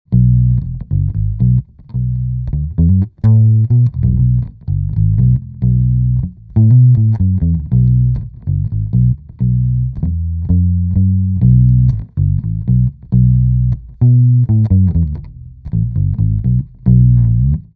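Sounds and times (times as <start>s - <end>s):
bass ukulele: 0.1s - 17.7s.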